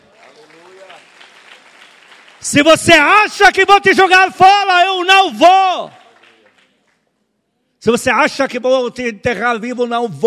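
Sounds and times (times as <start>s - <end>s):
audience applause: 0.0s - 2.7s, 5.8s - 7.0s
speech: 2.4s - 6.0s, 7.8s - 10.2s.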